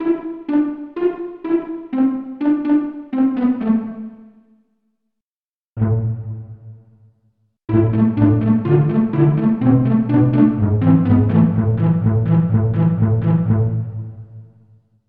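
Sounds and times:
pizzicato section: 0:00.0 - 0:04.2, 0:05.8 - 0:06.6, 0:07.7 - 0:14.2.

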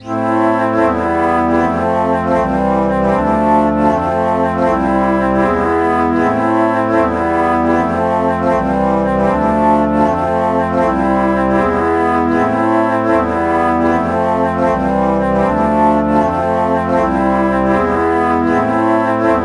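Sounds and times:
alto flute chord morph: 0:00.0 - 0:19.4.

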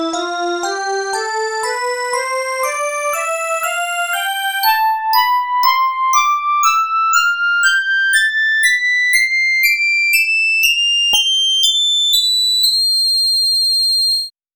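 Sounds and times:
bowed glass playing a scale: 0:00.2 - 0:14.3.

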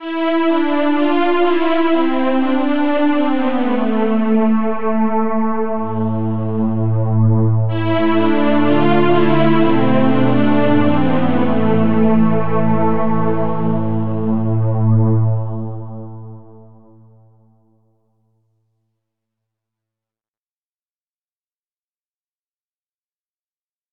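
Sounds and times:
sweep pad: 0:00.1 - 0:16.7.

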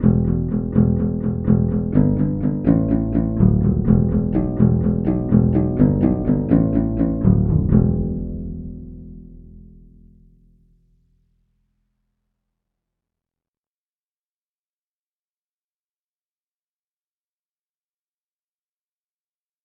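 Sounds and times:
banjo bass: 0:00.0 - 0:10.8.

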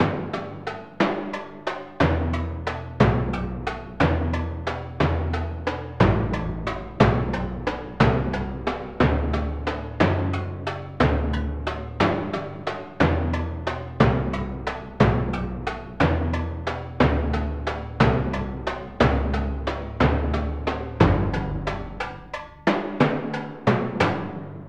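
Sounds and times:
timpani: 0:00.0 - 0:24.6.

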